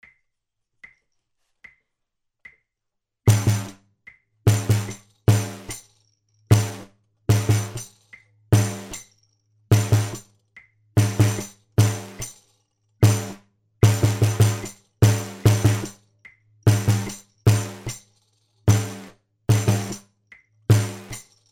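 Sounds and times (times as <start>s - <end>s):
bass: 3.3s - 3.8s, 4.4s - 5.7s, 6.5s - 7.8s, 8.5s - 9.0s, 9.7s - 10.3s, 11.0s - 12.2s, 13.0s - 18.0s, 18.7s - 21.2s.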